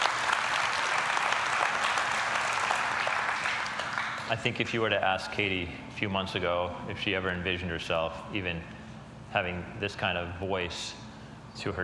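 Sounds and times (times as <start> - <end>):
audience applause: 0.0 - 4.4
speech: 4.3 - 11.0, 11.6 - 11.8.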